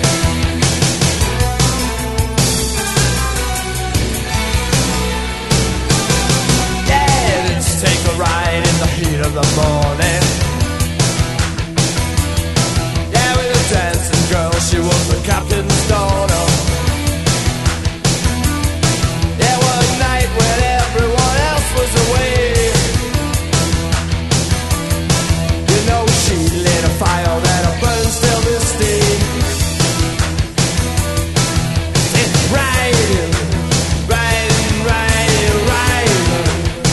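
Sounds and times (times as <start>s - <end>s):
disco music: 0.0s - 36.9s.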